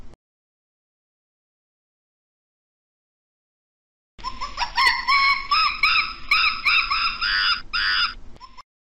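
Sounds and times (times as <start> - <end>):
monkeys calling: 4.2 - 8.6.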